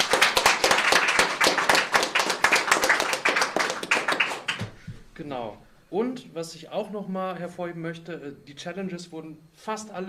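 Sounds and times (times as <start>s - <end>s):
hands clapping: 0.0s - 4.8s
speech: 5.3s - 10.0s.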